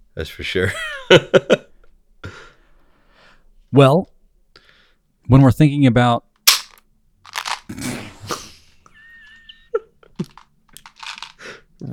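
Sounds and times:
speech: 0.2s - 1.6s, 3.7s - 4.1s, 5.3s - 6.3s
toy Tic Tac gun dispenser clicking and crunching: 6.5s - 7.7s, 10.2s - 11.3s.

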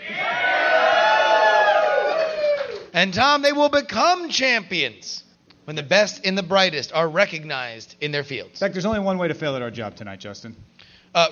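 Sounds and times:
audience giving a big loud yell: 0.0s - 2.9s
speech: 3.0s - 11.2s.

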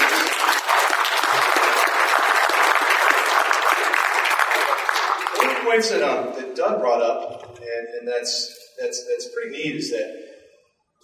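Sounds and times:
audience applause: 0.0s - 5.9s
speech: 5.7s - 10.2s.

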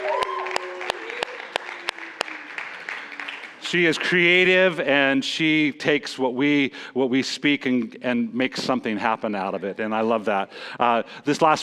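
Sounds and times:
audience round of applause: 0.0s - 3.8s
speech: 3.7s - 11.6s.

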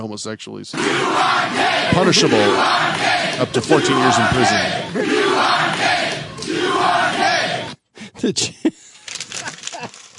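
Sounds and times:
speech: 0.0s - 5.2s, 8.2s - 8.8s
scattered shouts and voices: 0.7s - 7.7s
Jerry Springer show studio audience cheering and whooping: 0.8s - 7.7s.

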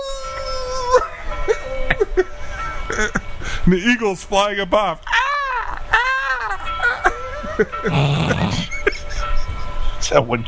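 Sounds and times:
wolves howling: 0.0s - 2.2s, 5.0s - 9.2s
laughter: 1.0s - 3.3s, 5.7s - 9.8s
speech: 3.0s - 5.1s, 7.6s - 8.8s, 10.1s - 10.4s.

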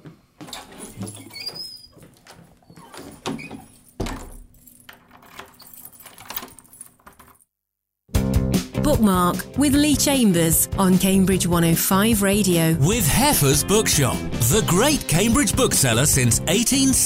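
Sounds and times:
speech: 1.0s - 1.2s, 8.9s - 17.0s
keys jangling and clinking: 2.8s - 7.4s.

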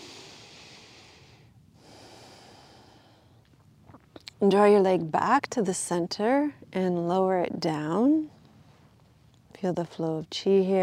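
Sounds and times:
deep breath during a yin yoga session: 0.0s - 3.4s
speech: 4.4s - 8.4s, 9.6s - 10.8s.

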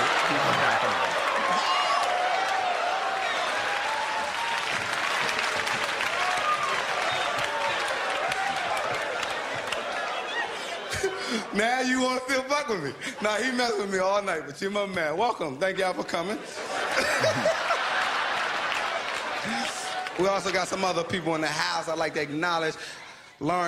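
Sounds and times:
laughter: 0.0s - 2.1s, 8.4s - 14.0s, 16.2s - 23.0s
crowd applause: 0.0s - 12.3s, 16.6s - 22.1s
speech: 11.6s - 16.6s, 20.2s - 23.6s.

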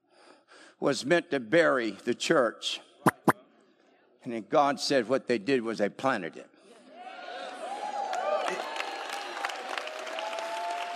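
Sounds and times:
speech: 0.8s - 2.9s, 4.2s - 6.5s
audience applause: 8.1s - 10.9s.

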